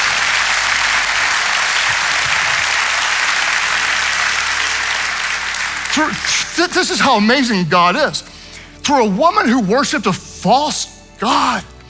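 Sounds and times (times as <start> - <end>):
audience applause: 0.0 - 7.0
speech: 6.0 - 11.7.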